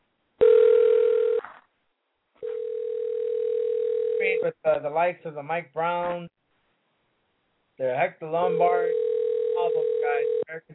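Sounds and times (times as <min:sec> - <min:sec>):
telephone dial tone while calling: 0:00.4 - 0:01.4, 0:02.4 - 0:04.4, 0:08.6 - 0:10.5
speech: 0:04.4 - 0:06.4, 0:07.8 - 0:09.0.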